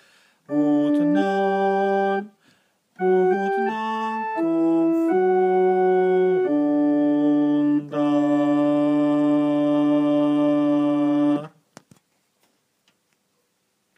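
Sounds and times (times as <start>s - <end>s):
contralto voices singing: 0.5s - 2.4s, 3.0s - 11.6s.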